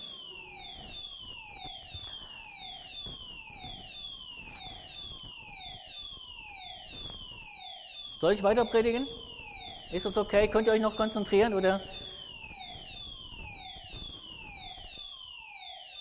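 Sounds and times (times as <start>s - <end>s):
smoke detector alarm going off: 0.0s - 15.9s
speech: 8.2s - 9.2s, 9.9s - 12.0s.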